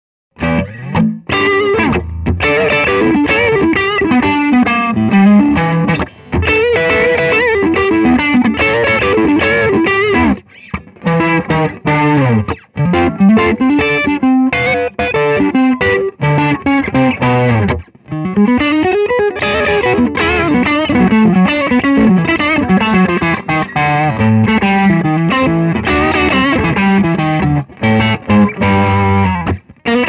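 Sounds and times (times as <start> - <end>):
hollow T neck electric guitar with pickups: 0.4 - 30.0.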